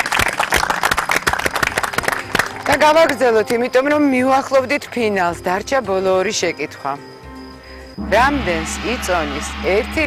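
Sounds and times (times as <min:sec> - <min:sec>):
quiz-show audience applauding: 0:00.0 - 0:03.2
speech: 0:02.7 - 0:07.1, 0:08.0 - 0:10.0.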